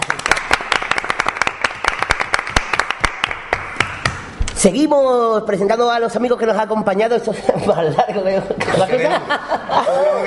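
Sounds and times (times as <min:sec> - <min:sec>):
applause: 0:00.0 - 0:04.2
speech: 0:04.6 - 0:10.2
laughter: 0:07.4 - 0:10.2.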